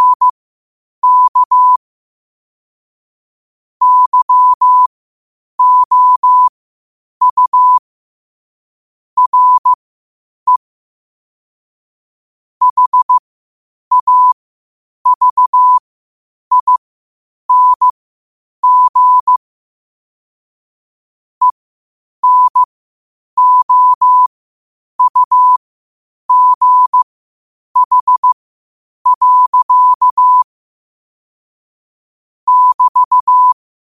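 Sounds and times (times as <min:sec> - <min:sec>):
morse code at 5 wpm: 0:00.0 - 0:00.3, 0:01.0 - 0:01.8, 0:03.8 - 0:04.9, 0:05.6 - 0:06.5, 0:07.2 - 0:07.8, 0:09.2 - 0:09.8, 0:12.6 - 0:13.2, 0:13.9 - 0:14.4, 0:15.1 - 0:15.8, 0:16.5 - 0:16.8, 0:17.5 - 0:17.9, 0:18.6 - 0:19.4, 0:22.2 - 0:22.7, 0:23.4 - 0:24.3, 0:25.0 - 0:25.6, 0:26.3 - 0:27.0, 0:27.8 - 0:28.4, 0:29.0 - 0:30.5, 0:32.5 - 0:33.6.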